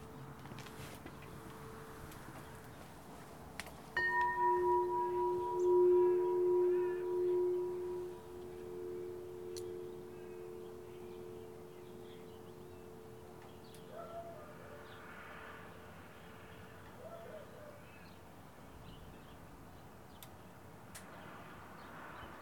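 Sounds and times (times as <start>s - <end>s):
local traffic: 0.0s - 22.4s
wind chimes: 3.9s - 14.0s
dog barking: 13.9s - 14.9s, 17.0s - 17.8s.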